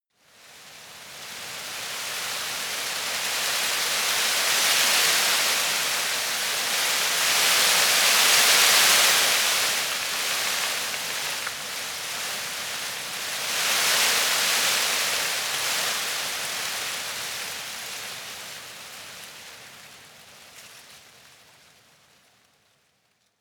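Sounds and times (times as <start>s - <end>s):
tree leaves rustling: 0.3s - 22.7s.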